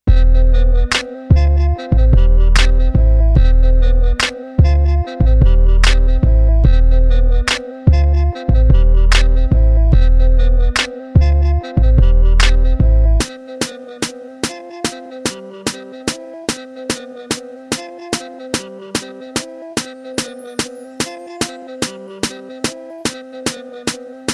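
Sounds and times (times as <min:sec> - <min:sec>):
instrumental music: 0:00.0 - 0:24.3.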